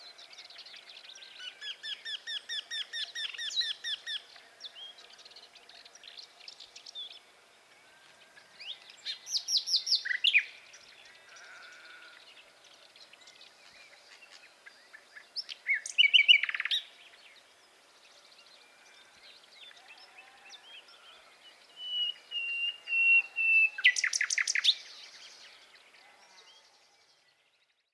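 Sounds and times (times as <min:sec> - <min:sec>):
Common Nightingale Luscinia megarhynchos song in a garden: 0:00.0 - 0:27.9.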